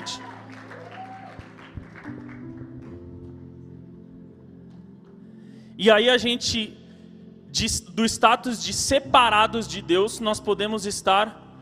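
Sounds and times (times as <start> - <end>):
audience applause: 0.0 - 3.0
speech: 0.1 - 0.3, 5.8 - 6.8, 7.6 - 11.4.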